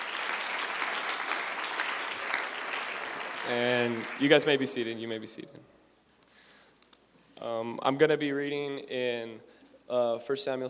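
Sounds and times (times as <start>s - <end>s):
audience clapping: 0.0s - 4.9s
speech: 3.5s - 5.8s, 7.5s - 10.6s.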